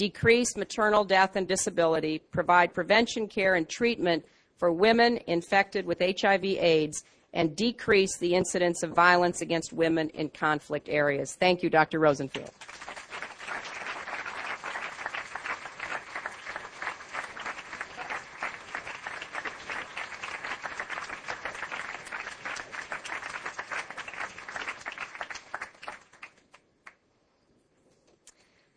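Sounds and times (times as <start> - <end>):
speech: 0.0 - 13.0
audience applause: 12.5 - 26.6.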